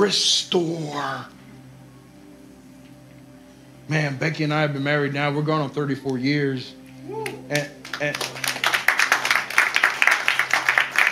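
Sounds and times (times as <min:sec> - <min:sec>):
speech: 0:00.0 - 0:01.4, 0:03.9 - 0:08.5
audience clapping: 0:07.2 - 0:11.1.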